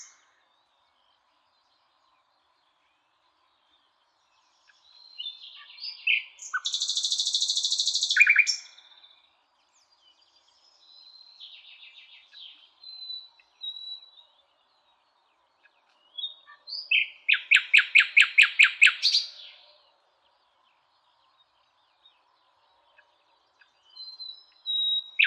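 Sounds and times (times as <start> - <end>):
common nightingale song: 5.2 - 8.7, 16.2 - 19.4, 24.0 - 25.2.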